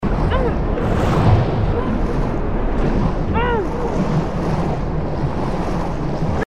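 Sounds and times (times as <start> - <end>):
person diving: 0.0 - 6.4.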